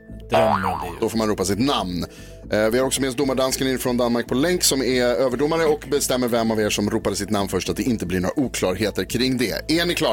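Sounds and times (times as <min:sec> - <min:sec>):
springy cartoon boing sound effect: 0:00.3 - 0:01.1
speech: 0:00.3 - 0:10.1.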